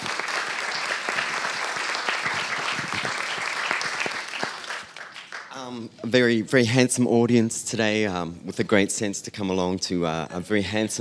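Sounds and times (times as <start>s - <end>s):
audience applause: 0.0s - 5.6s
speech: 5.7s - 10.9s.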